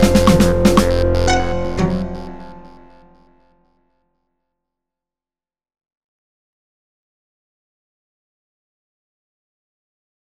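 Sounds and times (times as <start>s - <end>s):
synth snare drum click: 0.0s - 2.8s.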